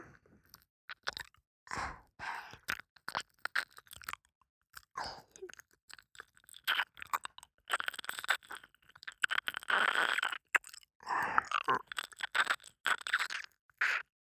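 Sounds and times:
ear licking sounds: 0.5 - 1.4, 2.5 - 14.1.

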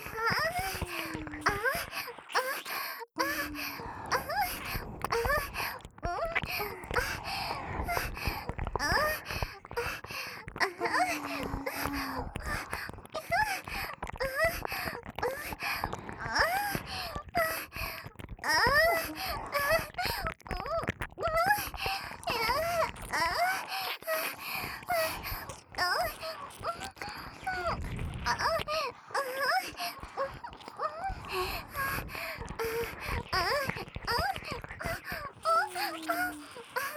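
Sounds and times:
licking of both ears: 0.0 - 36.9
acted moaning: 0.2 - 1.8, 10.6 - 12.4, 35.4 - 36.9.

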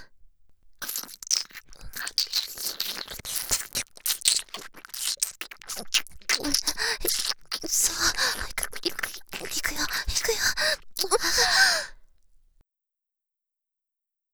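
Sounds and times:
ASMR ear licking: 0.8 - 11.8.

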